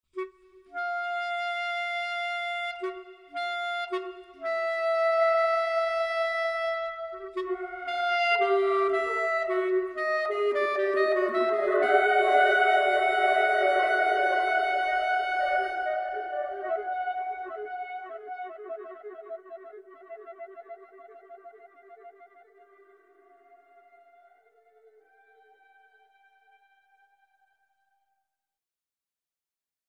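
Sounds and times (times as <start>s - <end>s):
clarinet: 0.1s - 27.0s.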